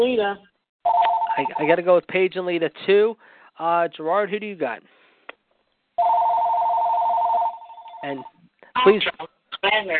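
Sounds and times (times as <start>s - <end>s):
speech: 0.0s - 5.0s, 8.0s - 9.9s
electronic two-tone telephone ring for a call-in caller: 0.9s - 1.6s, 6.0s - 8.3s.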